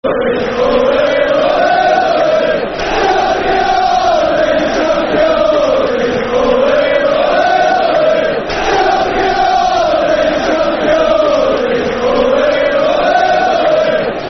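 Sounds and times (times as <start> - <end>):
football crowd chanting a soccer song: 0.0 - 14.2.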